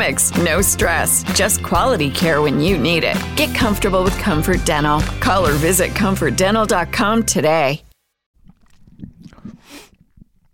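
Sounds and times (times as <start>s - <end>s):
speech: 0.0s - 7.9s
mouth and cup sounds: 8.4s - 10.5s
person slurping tea: 8.4s - 10.5s.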